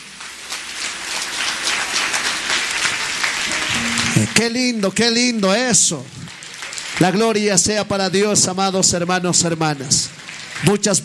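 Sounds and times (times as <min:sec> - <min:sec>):
audience applause: 0:00.1 - 0:04.3, 0:06.2 - 0:07.4, 0:09.4 - 0:11.0
speech: 0:04.2 - 0:06.4, 0:07.0 - 0:11.0.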